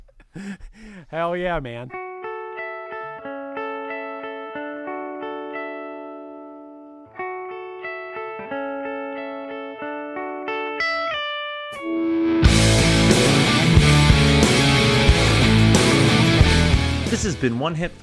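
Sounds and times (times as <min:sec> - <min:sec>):
speech: 0:00.4 - 0:02.0, 0:17.4 - 0:18.0
instrumental rock song as outro music: 0:01.9 - 0:17.5.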